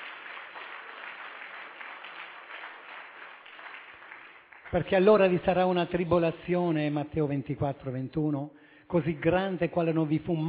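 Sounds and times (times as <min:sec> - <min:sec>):
audience applause: 0:00.0 - 0:04.9
speech: 0:04.7 - 0:10.4.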